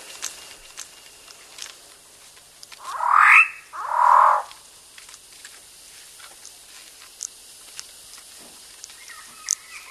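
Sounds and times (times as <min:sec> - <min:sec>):
Raggiana bird-of-paradise giving a harsh nasal honking call: 0:02.8 - 0:04.6.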